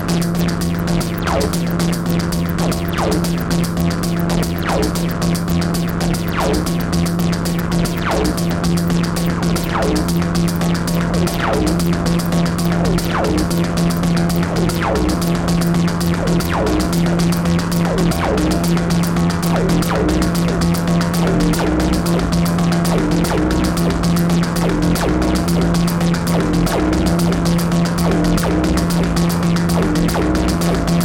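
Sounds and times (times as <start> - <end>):
grotesque dark distorted tekk noise jam on Analog Rytm: 0.0 - 31.0.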